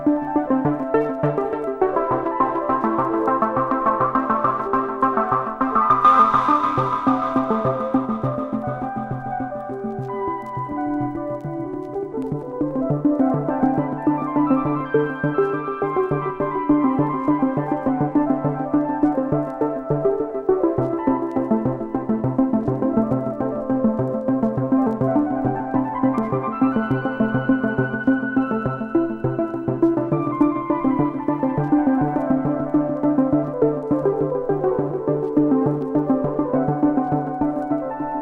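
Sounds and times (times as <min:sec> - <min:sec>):
ambient mix: 0:00.0 - 0:38.2.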